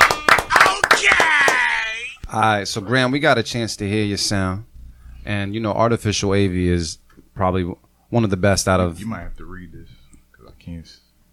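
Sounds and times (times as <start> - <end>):
many hands clapping: 0.0 - 1.9
speech: 2.3 - 10.0, 10.6 - 11.0.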